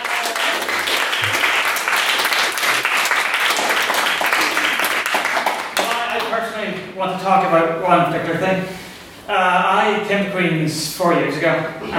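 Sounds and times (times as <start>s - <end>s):
crowd applause: 0.0s - 6.2s
speech: 7.0s - 11.9s.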